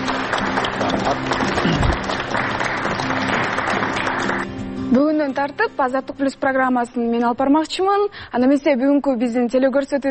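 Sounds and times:
studio audience applause sending off a departing presenter: 0.0 - 4.5
speech: 5.3 - 10.0.

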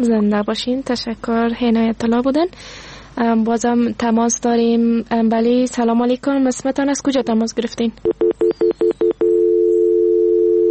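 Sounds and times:
speech: 0.0 - 8.2
telephone line beeps and tone after a dropped call: 8.1 - 10.6.

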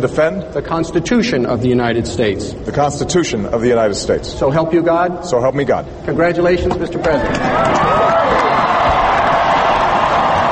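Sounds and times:
speech: 0.0 - 8.0
crowd cheering and applauding: 7.2 - 10.5.

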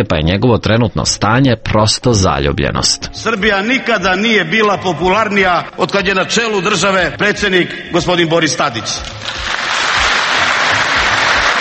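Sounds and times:
speech: 0.0 - 9.8
audience applause: 9.0 - 11.6.

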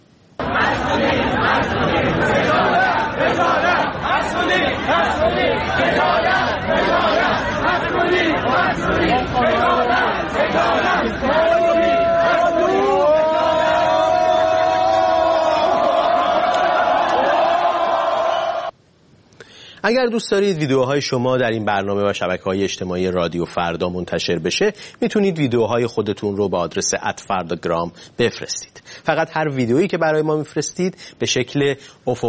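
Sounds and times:
Amirkabir University students' crowd chatter and shouting while protesting: 0.4 - 18.7
speech: 19.9 - 32.2.

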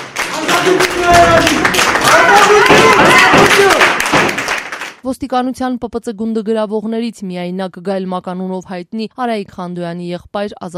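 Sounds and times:
crowd clapping in a courtroom greeting detainees: 0.0 - 5.0
people shouting in a courtroom: 0.3 - 4.0
speech: 5.0 - 10.7.

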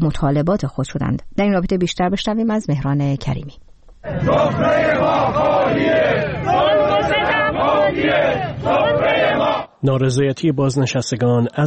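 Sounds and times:
speech: 0.0 - 6.6, 7.9 - 11.6
protest rally crowd chanting: 4.0 - 9.8.

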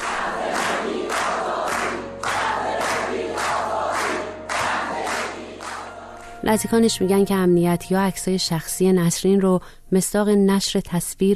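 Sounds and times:
protest crowd chanting slogans: 0.0 - 6.2
speech: 6.5 - 11.3.

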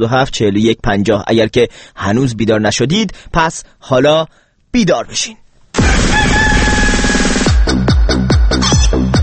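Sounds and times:
speech: 0.0 - 6.4
rooster crowing at dawn: 5.8 - 7.5
rooster clucking: 8.6 - 9.1.

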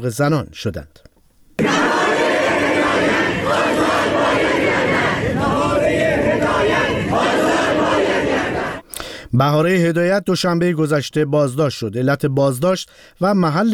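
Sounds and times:
speech: 0.0 - 1.1, 9.3 - 13.7
protesting students chanting slogans at a rally: 1.6 - 8.8.

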